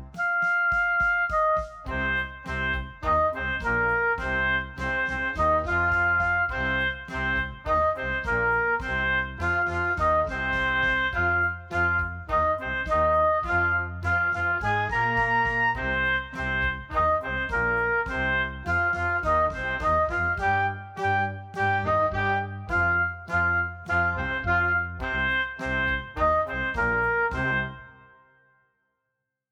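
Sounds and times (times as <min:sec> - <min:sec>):
oboe playing hard rock blues, louder and slower: 0:00.2 - 0:27.8.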